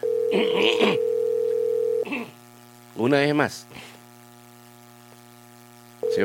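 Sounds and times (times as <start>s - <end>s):
ringback tone of an unanswered telephone call to a manager: 0.0s - 2.0s, 6.0s - 6.2s
speech: 0.3s - 1.1s, 3.0s - 3.9s.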